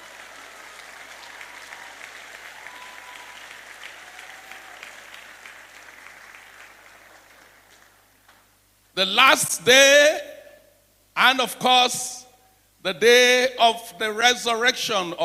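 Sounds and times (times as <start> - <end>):
people clapping: 0.0 - 8.6
speech: 9.0 - 10.2, 11.2 - 12.2, 12.8 - 15.2.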